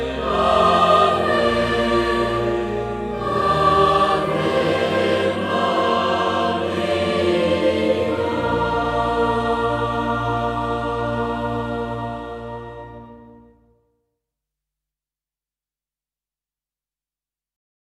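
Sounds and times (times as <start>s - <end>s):
boys choir singing: 0.0s - 13.2s.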